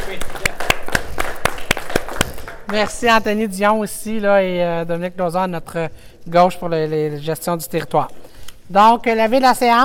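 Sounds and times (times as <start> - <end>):
scattered applause at a council meeting: 0.0 - 3.0
speech: 2.7 - 9.8.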